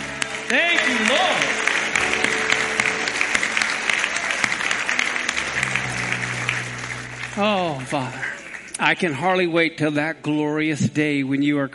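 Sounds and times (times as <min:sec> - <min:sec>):
audience applause: 0:00.0 - 0:09.2
speech: 0:00.5 - 0:01.6, 0:07.4 - 0:08.2, 0:08.8 - 0:11.7.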